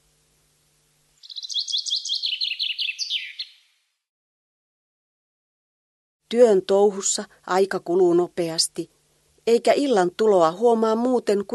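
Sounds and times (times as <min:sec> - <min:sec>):
birdsong echoing from spruce forest: 0:01.2 - 0:03.8
speech: 0:06.3 - 0:11.5.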